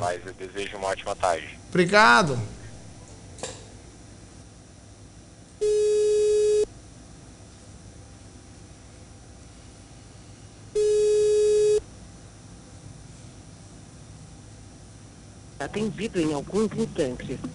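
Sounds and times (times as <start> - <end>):
speech: 0.0 - 2.6, 15.7 - 17.5
telephone line electronic beeps during call transfer: 5.6 - 6.7, 10.8 - 11.8.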